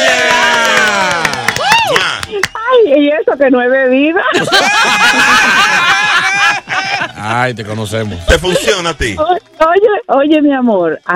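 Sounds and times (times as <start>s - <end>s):
applause: 0.0s - 2.6s
speech: 3.4s - 5.9s, 7.2s - 11.1s
laughter: 4.2s - 9.2s.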